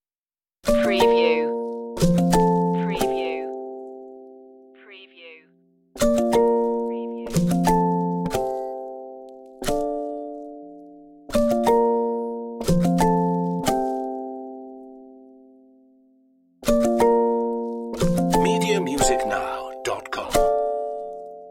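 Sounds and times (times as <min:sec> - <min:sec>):
music without percussion: 0:00.7 - 0:03.9, 0:06.0 - 0:15.1, 0:16.6 - 0:21.4.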